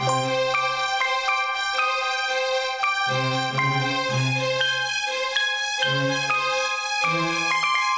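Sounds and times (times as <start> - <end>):
synthesizer: 0.0 - 7.9.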